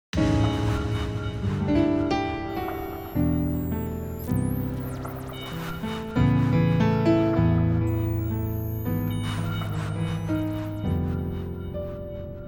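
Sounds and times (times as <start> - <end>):
ambient music: 0.1 - 12.4.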